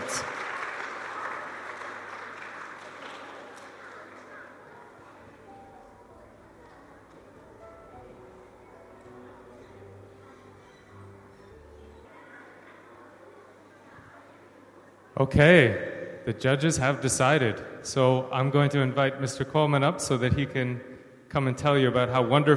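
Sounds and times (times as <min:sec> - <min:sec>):
audience applause: 0:00.0 - 0:05.3
speech: 0:15.2 - 0:22.5.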